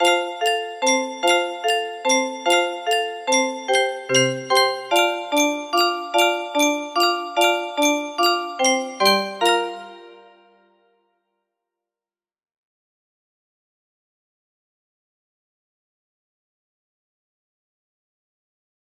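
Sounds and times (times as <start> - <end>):
processed chords: 0.0 - 10.5
music box melody: 0.0 - 10.6.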